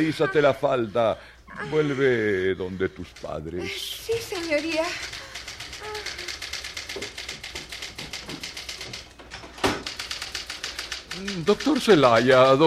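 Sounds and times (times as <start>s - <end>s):
speech: 0.0s - 5.2s, 11.2s - 12.6s
mechanical typewriter typing on a bare roller: 2.9s - 12.6s.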